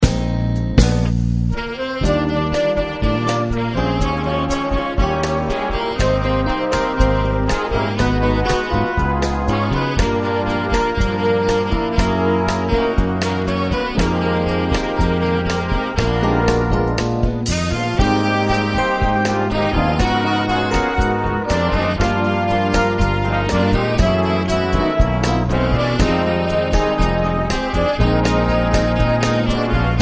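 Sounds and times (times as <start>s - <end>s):
bossa jazz orchestra: 0.0s - 29.9s.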